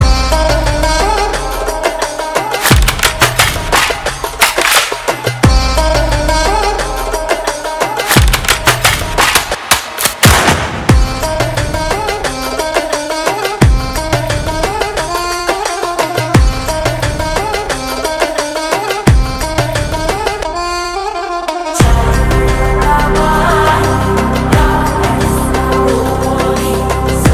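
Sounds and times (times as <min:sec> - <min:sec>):
Telugu instrumental background music: 0:00.0 - 0:27.3.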